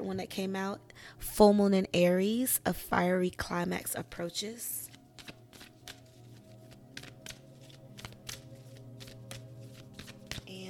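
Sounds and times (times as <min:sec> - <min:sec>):
speech: 0:00.0 - 0:04.9
Moonology oracle cards being shuffled: 0:04.7 - 0:10.6.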